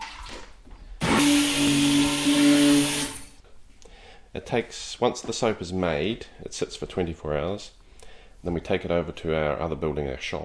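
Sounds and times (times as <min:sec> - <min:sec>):
electric mixer beating a warm melted soap mixture: 0:01.0 - 0:03.3
speech: 0:04.4 - 0:07.8, 0:08.4 - 0:10.4.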